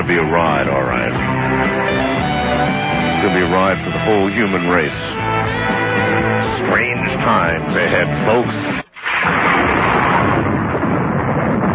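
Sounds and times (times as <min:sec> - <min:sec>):
speech: 0:00.1 - 0:02.0, 0:02.7 - 0:05.8, 0:06.6 - 0:09.8
thunder: 0:09.0 - 0:11.7.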